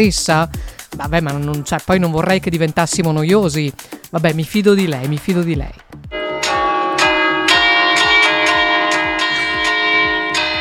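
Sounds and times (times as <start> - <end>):
speech: 0.0 - 5.9
church bells of Agordo ringing: 6.1 - 10.5.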